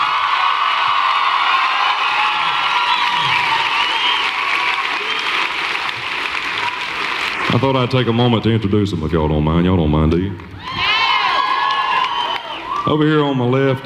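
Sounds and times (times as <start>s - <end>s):
cheers and whoops: 0.0s - 7.1s, 10.6s - 12.9s
crowd applause: 0.0s - 8.8s, 10.6s - 12.9s
speech: 7.6s - 10.8s, 12.9s - 13.8s.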